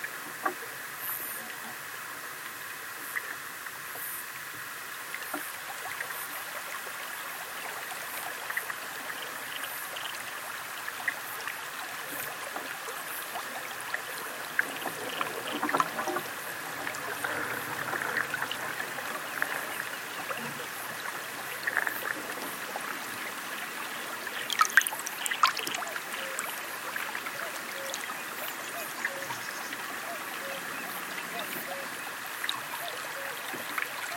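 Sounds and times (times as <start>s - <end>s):
River Allen chalk river flowing in the UK: 0.0s - 34.1s.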